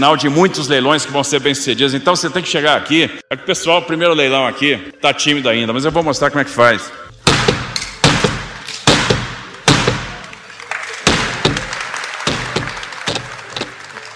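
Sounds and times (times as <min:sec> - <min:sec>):
speech: 0:00.0 - 0:07.1
auction gavel being struck: 0:07.3 - 0:10.2, 0:11.1 - 0:13.8
crowd noise: 0:09.2 - 0:14.1.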